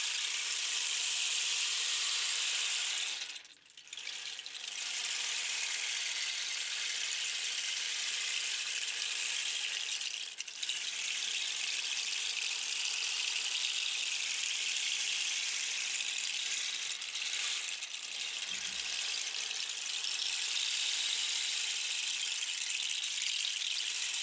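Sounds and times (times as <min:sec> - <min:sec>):
rainstick: 0:00.1 - 0:13.7, 0:14.5 - 0:24.2.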